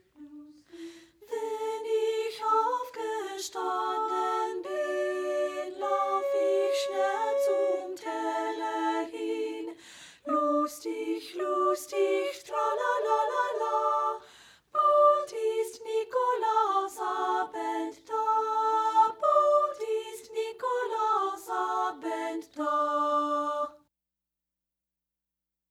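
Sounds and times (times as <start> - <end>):
a cappella folk songs: 0.0 - 23.9.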